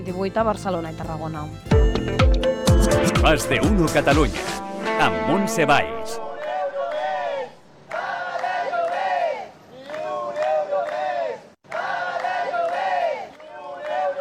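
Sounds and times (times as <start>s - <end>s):
speech: 0.0s - 6.3s
protesters chanting slogans at a street demonstration: 5.0s - 14.1s.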